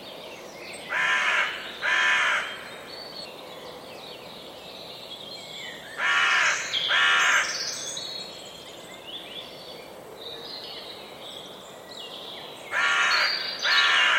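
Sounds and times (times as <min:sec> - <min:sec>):
crow-like bird giving harsh caws: 0:00.9 - 0:02.6, 0:06.0 - 0:07.4, 0:12.8 - 0:14.1.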